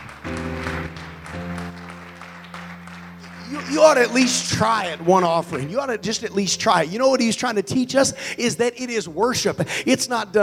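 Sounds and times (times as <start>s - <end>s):
audience clapping together: 0.0s - 6.3s
speech: 3.5s - 10.4s.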